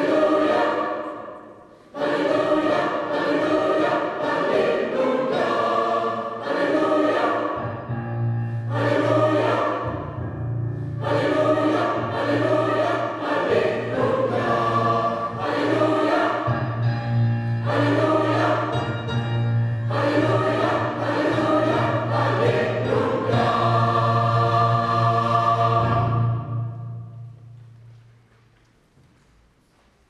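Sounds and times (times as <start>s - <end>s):
gospel choir singing: 0.0s - 27.3s.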